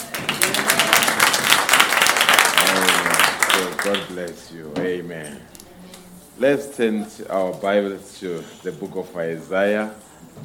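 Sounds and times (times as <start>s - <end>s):
crowd applauding: 0.0s - 4.4s
speech: 3.8s - 5.6s, 6.4s - 10.4s.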